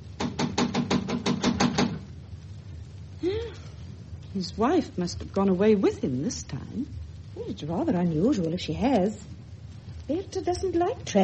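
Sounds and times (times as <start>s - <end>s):
knocking on a door: 0.2s - 2.1s
speech: 4.4s - 9.4s, 10.1s - 11.2s.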